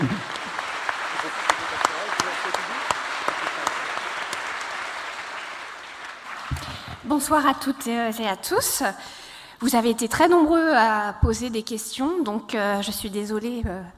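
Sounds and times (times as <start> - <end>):
crowd applauding: 0.0 - 7.1
speech: 7.1 - 13.9.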